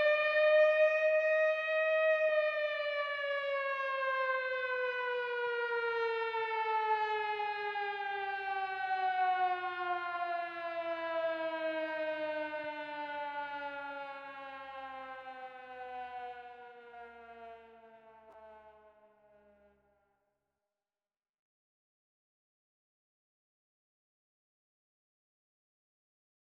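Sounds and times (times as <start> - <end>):
air raid siren: 0.0 - 19.8.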